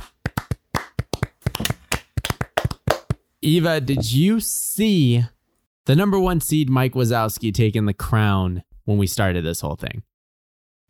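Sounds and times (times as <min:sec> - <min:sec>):
hands clapping: 0:00.0 - 0:03.2
speech: 0:03.4 - 0:10.1.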